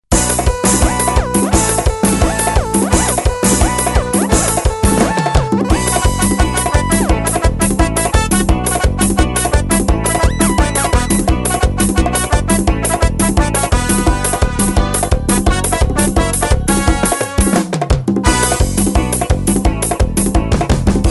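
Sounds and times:
electric Bahia rhythm music: 0:00.1 - 0:21.0.

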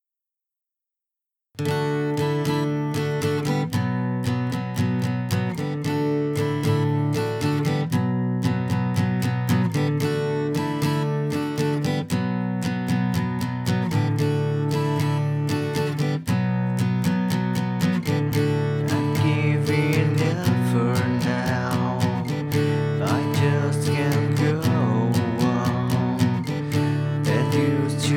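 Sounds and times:
ballad: 0:01.7 - 0:28.1.

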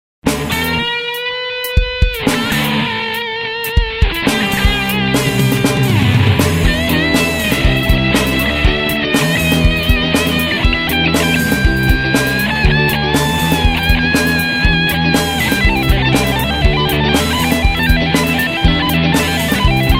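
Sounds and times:
guitar: 0:00.2 - 0:19.9.

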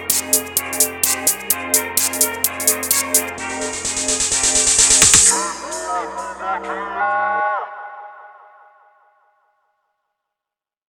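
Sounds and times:
groove in rave instrumental music: 0:00.0 - 0:07.8.

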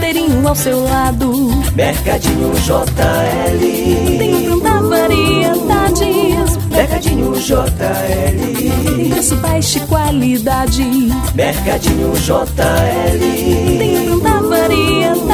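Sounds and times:
market jingle: 0:00.2 - 0:15.3.

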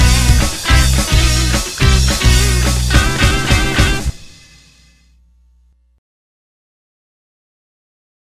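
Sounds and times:
instrumental music: 0:00.0 - 0:04.8.

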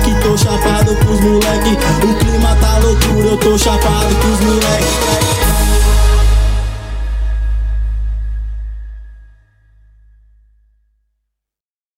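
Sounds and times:
rap music: 0:00.0 - 0:08.0.

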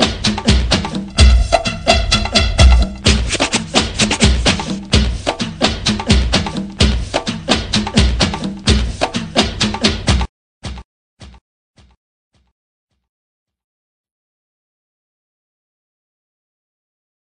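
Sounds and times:
fast tamborzão funk instrumental beat: 0:00.0 - 0:10.2.

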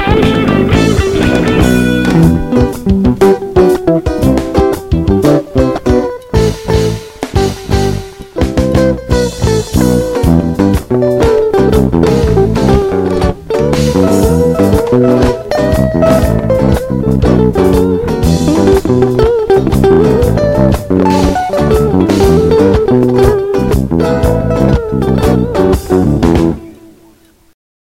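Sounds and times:
bass: 0:00.0 - 0:26.7
instrumental guitar: 0:00.0 - 0:27.6.

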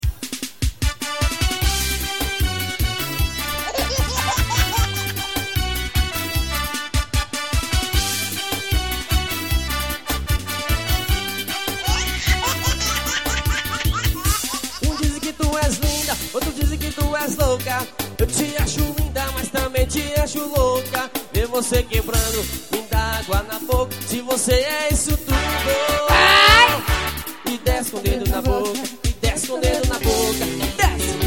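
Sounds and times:
live arrocha music: 0:00.2 - 0:31.2
laughter: 0:03.4 - 0:05.5, 0:11.6 - 0:15.4, 0:26.0 - 0:26.9.

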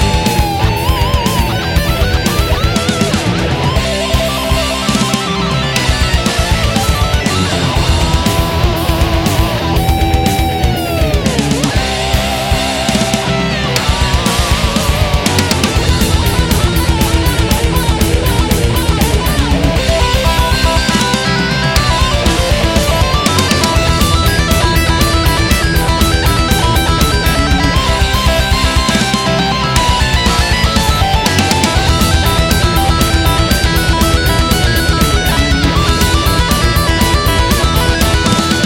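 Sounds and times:
guitar space noise: 0:00.0 - 0:38.6.

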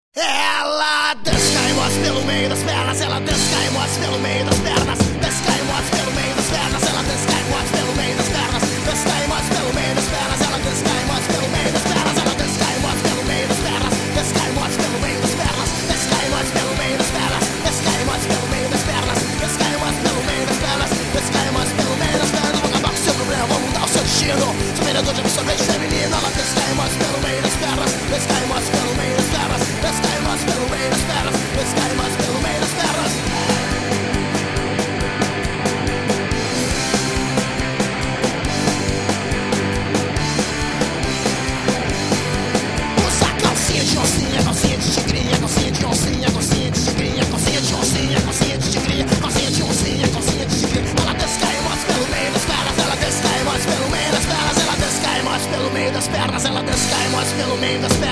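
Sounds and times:
punk rock music: 0:00.1 - 0:58.1.

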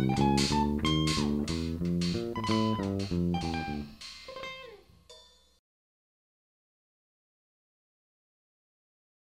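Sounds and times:
jazz jam session: 0:00.0 - 0:05.3.

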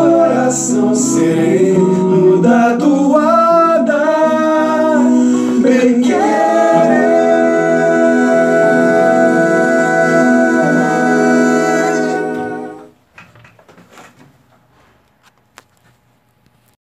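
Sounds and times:
toada folk song: 0:00.0 - 0:13.0.

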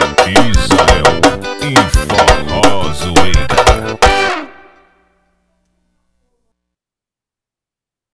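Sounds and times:
sound check: 0:00.2 - 0:04.6.

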